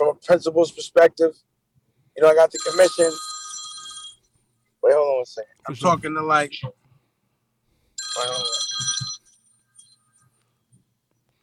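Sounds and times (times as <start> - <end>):
speech: 0.2 - 1.5, 2.2 - 3.3, 4.9 - 6.8, 8.2 - 9.0
FaceTime video call ringing on a phone: 2.4 - 4.3, 8.0 - 10.4.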